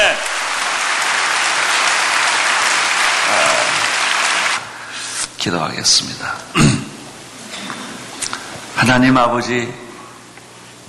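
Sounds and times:
crowd clapping: 0:00.0 - 0:04.8
speech: 0:05.4 - 0:06.8, 0:08.8 - 0:09.8.

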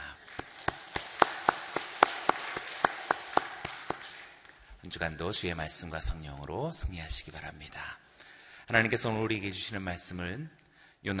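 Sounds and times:
audience applause: 0:00.0 - 0:04.4
speech: 0:04.8 - 0:08.0, 0:08.7 - 0:11.1.

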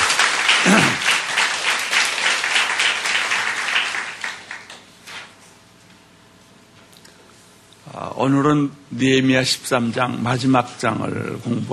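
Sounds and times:
audience applause: 0:00.0 - 0:04.9
speech: 0:00.6 - 0:01.0, 0:08.2 - 0:11.7.

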